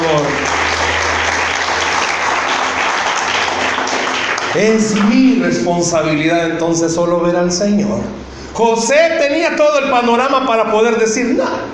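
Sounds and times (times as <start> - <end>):
audience applause: 0.0 - 5.3
speech: 4.6 - 11.7.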